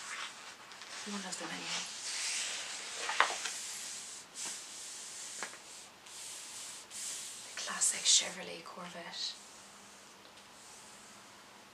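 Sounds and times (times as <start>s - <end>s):
pages of a photo book turning: 0.0s - 3.6s
faint steady hiss: 0.0s - 11.7s
speech: 1.0s - 2.0s, 8.0s - 9.4s.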